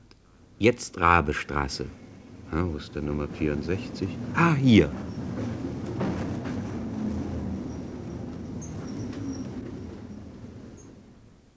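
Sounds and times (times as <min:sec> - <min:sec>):
tram rumbling at speed through empty streets: 0:00.4 - 0:11.5
speech: 0:00.6 - 0:05.1
clacks: 0:02.8 - 0:11.0
thin metallic squeals: 0:07.5 - 0:11.1.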